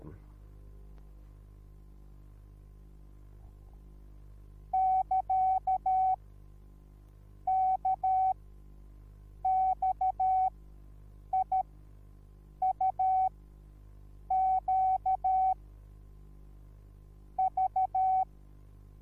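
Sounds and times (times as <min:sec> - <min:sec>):
morse code beeps: 0:04.7 - 0:06.2, 0:07.5 - 0:08.3, 0:09.5 - 0:10.5, 0:12.6 - 0:13.3, 0:14.3 - 0:15.5, 0:17.4 - 0:18.3.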